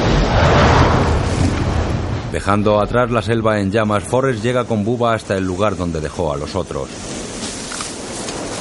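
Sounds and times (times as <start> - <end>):
napalm bombs exploding over a burning jungle: 0.0 - 3.2
speech: 2.4 - 7.2.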